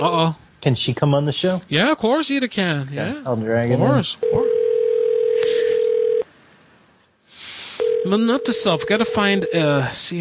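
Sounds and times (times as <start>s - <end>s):
speech: 0.0s - 4.5s, 8.1s - 10.2s
quiet hiss: 0.0s - 10.2s
telephone dial tone: 4.2s - 6.2s, 7.8s - 9.6s.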